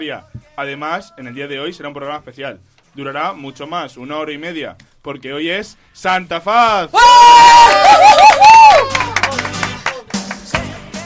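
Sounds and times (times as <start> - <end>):
speech: 0.0 - 9.1
group shouting in unison: 7.0 - 9.2
scattered cheering: 7.0 - 9.5.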